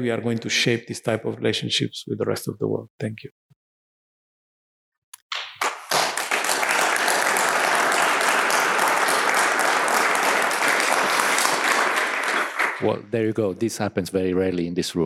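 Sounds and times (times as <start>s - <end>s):
speech: 0.0s - 3.4s, 12.8s - 15.0s
audience applause of many hands: 5.3s - 12.9s.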